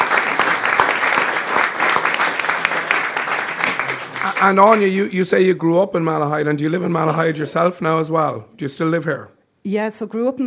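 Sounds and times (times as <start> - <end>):
audience round of applause: 0.0 - 5.1
speech: 4.4 - 10.4.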